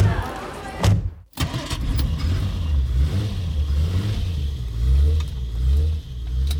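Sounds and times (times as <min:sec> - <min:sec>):
car engine revving and accelerating away: 0:01.4 - 0:06.5.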